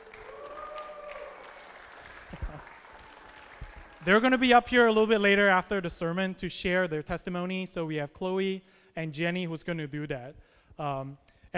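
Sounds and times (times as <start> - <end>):
audience clapping: 0.0 - 4.9
speech: 4.0 - 11.5.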